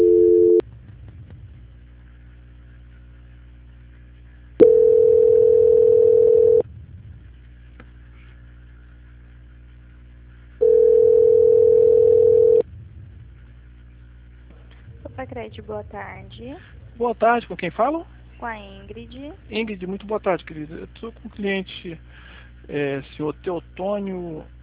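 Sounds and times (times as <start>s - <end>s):
telephone tone while a call is being transferred: 0.0s - 0.6s, 4.6s - 6.6s, 10.6s - 12.6s
low line hum: 0.0s - 24.6s
speech: 15.5s - 24.6s.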